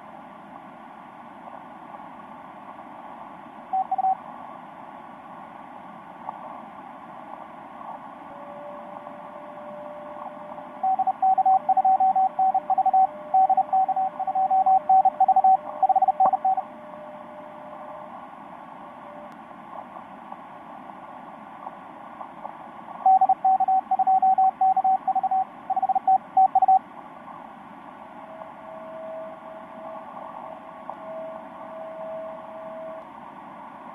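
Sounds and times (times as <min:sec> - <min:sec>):
CW radio signal on the 10m band: 0:03.7 - 0:04.2, 0:07.8 - 0:20.1, 0:21.6 - 0:26.8, 0:28.0 - 0:33.2.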